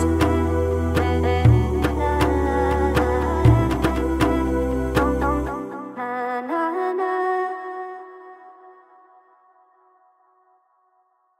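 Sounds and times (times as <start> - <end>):
nasheed background vocals: 0.0 - 10.0.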